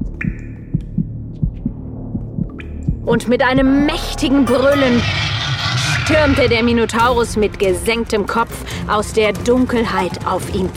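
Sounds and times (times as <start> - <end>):
pounding heartbeat: 0.0 - 7.4
deep hum: 1.4 - 8.3
speech: 3.1 - 5.3, 6.1 - 10.7.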